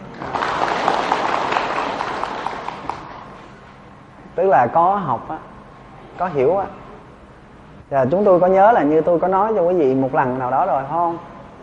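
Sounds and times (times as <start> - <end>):
audience applause at a Buddhist teaching talk: 0.0 - 3.2
speech: 4.4 - 5.5, 6.2 - 6.8, 7.9 - 11.3.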